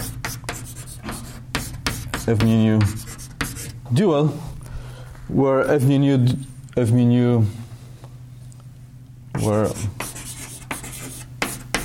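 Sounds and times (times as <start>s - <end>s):
writing on a board during a lecture: 0.0s - 3.8s, 9.4s - 11.8s
speech: 2.3s - 3.1s, 3.9s - 4.5s, 5.3s - 7.6s, 9.4s - 10.0s.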